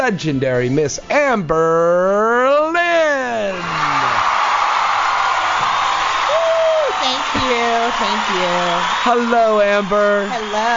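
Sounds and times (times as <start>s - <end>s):
speech: 0.0s - 2.8s, 7.7s - 10.7s
crowd applauding and cheering: 3.3s - 10.7s
whoops: 3.4s - 10.7s
rising whistle-like shout: 6.2s - 10.7s.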